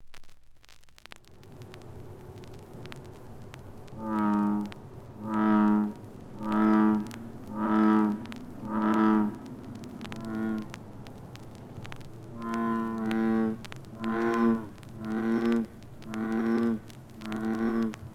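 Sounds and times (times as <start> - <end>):
bullfrog croaking: 4.0 - 10.8, 12.3 - 18.0.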